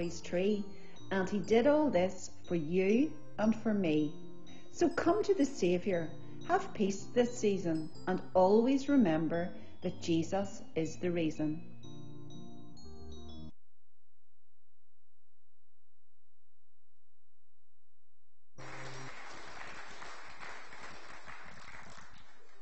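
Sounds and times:
speech: 0:00.0 - 0:11.7
round of applause: 0:18.6 - 0:22.6.

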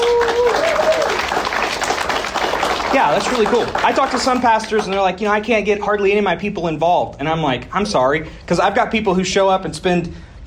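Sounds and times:
crowd clapping: 0:00.0 - 0:05.2
speech: 0:03.0 - 0:10.3.

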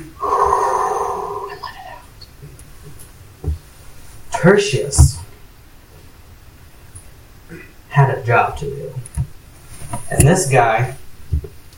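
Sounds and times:
deep breath in and out: 0:00.0 - 0:01.9
speech: 0:04.4 - 0:05.2, 0:08.3 - 0:09.0, 0:10.2 - 0:11.0.

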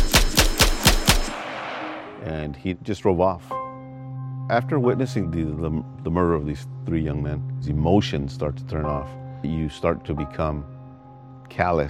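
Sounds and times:
gunshots: 0:00.0 - 0:02.3
speech: 0:02.2 - 0:03.6, 0:04.5 - 0:10.7, 0:11.5 - 0:11.8.

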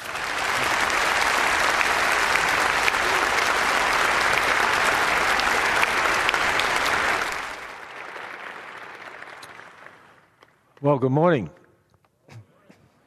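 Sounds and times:
audience applause welcoming a speaker: 0:00.0 - 0:10.4
speech: 0:10.9 - 0:11.6.

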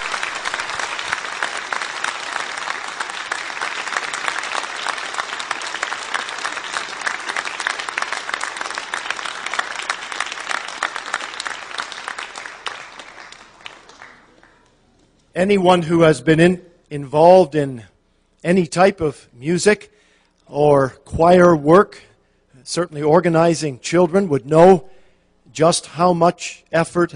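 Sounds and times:
audience applause: 0:00.0 - 0:14.8
speech: 0:15.4 - 0:27.1.

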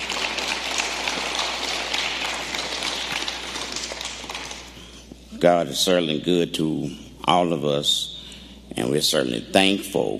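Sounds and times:
hand clapping applause: 0:00.0 - 0:05.0
speech: 0:05.4 - 0:08.1, 0:08.8 - 0:10.1.

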